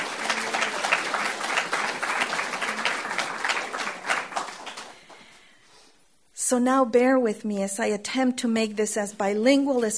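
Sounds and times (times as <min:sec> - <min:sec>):
audience applause: 0:00.0 - 0:05.2
speech: 0:06.5 - 0:09.9.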